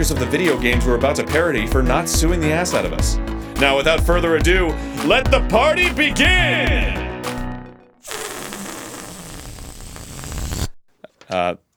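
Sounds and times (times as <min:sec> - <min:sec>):
speech: 0:00.0 - 0:07.0, 0:11.3 - 0:11.6
harsh rasping noise burst meant as an explosion sound effect: 0:08.0 - 0:10.8.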